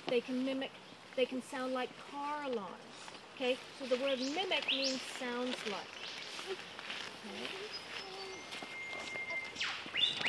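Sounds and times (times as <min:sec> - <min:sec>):
speech: 0:00.1 - 0:07.8
whipbird calling: 0:07.5 - 0:10.2.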